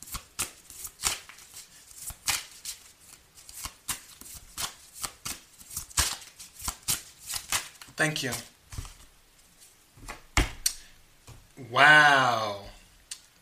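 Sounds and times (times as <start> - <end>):
playing cards being shuffled, dealt and handled: 0.0 - 9.1
speech: 8.0 - 8.5, 11.7 - 12.6.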